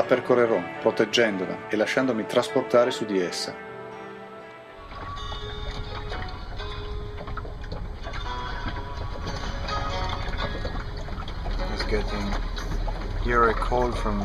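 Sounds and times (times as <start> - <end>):
speech: 0.1 - 3.7, 11.9 - 12.5, 13.2 - 14.2
boat hull and fittings creaking: 4.8 - 14.2
low rumble and wash of moving water: 4.8 - 14.2.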